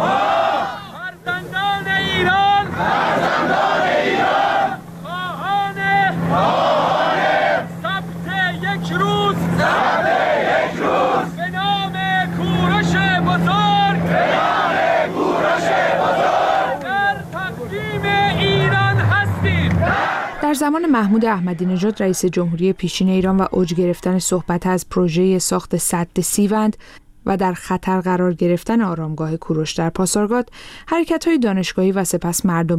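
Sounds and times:
large crowd chanting at a gathering: 0.0s - 1.1s, 2.0s - 5.2s, 6.1s - 7.8s, 9.4s - 11.4s, 13.6s - 22.2s
low engine-like drone: 0.0s - 24.9s
speech: 20.9s - 32.7s.

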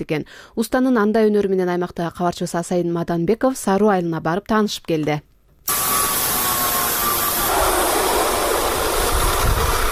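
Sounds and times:
speech: 0.0s - 5.3s
workshop machine tools buzzing while repairing farm implements in a village yard: 5.7s - 9.9s.

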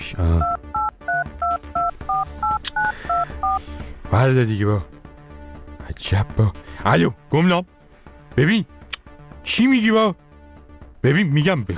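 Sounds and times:
speech: 0.1s - 0.6s, 4.1s - 4.9s, 6.0s - 7.8s, 8.4s - 8.7s, 9.4s - 10.2s, 11.0s - 11.7s
telephone keypad tones as a number is dialed: 0.4s - 3.6s.

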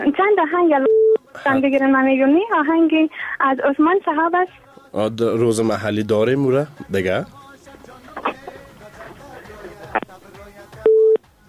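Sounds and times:
speech: 0.0s - 7.4s
telephone busy tone after a dropped call: 0.8s - 1.2s, 10.8s - 11.2s.

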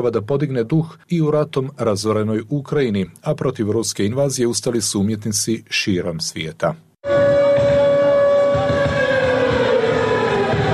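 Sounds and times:
speech: 0.0s - 6.9s
air raid sirens wailing: 7.0s - 10.7s.

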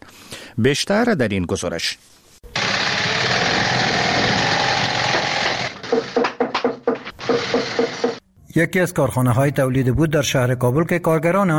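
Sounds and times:
speech: 0.6s - 2.1s, 8.6s - 11.5s
industrial sewing machines whirring in a shoe factory: 2.5s - 6.2s, 7.2s - 8.2s
hammering in a shoe factory: 4.1s - 8.2s.

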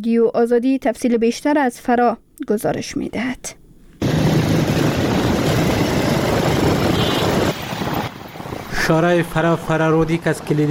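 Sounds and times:
speech: 0.0s - 3.6s, 8.8s - 10.6s
cargo and passenger truck engines: 4.0s - 10.6s.

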